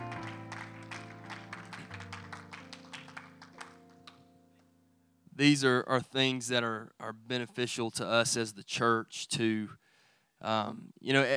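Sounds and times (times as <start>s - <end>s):
audience clapping hands: 0.0s - 4.3s
speech: 5.4s - 9.8s, 10.4s - 11.3s.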